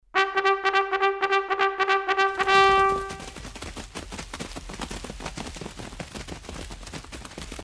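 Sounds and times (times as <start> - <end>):
bugle call: 0.2 - 3.4.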